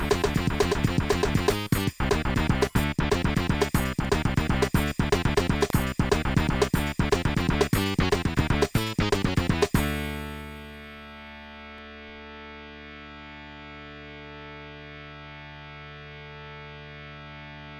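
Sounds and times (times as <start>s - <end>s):
Nvidia NV1 GM mode sound card test music: 0.0s - 12.4s.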